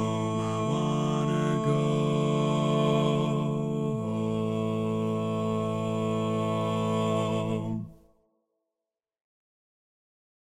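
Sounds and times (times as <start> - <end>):
song arrangement without tenor part: 0.0 - 7.9.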